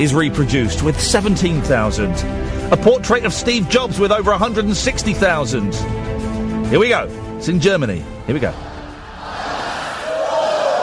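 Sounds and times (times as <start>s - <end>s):
speech: 0.0s - 8.7s
large crowd cheering and shouting as dominoes fall: 9.0s - 10.8s
sustained high-pitched yell: 9.9s - 10.8s.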